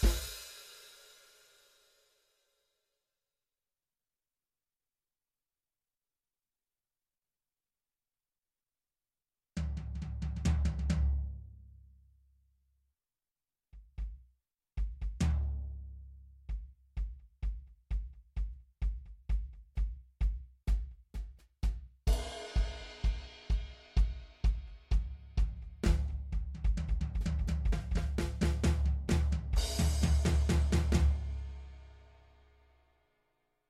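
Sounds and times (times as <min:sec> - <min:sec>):
drum: 0:00.0 - 0:01.3, 0:09.6 - 0:11.4, 0:13.8 - 0:31.7.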